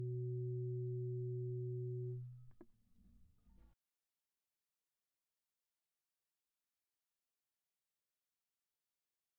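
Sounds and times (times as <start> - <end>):
dry EBow guitar drone: 0.0 - 2.3.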